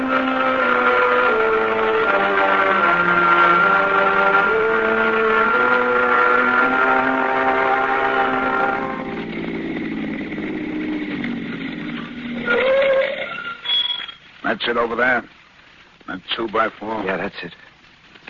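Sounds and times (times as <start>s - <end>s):
car engine driving along: 0.0s - 12.6s
speech: 14.7s - 15.4s, 16.2s - 17.6s.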